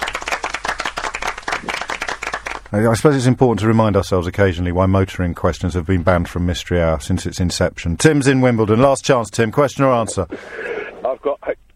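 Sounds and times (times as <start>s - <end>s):
round of applause: 0.0s - 2.8s
speech: 2.7s - 10.7s.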